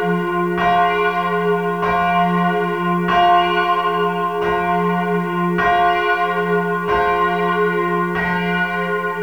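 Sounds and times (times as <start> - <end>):
church bell ringing: 0.0 - 9.2.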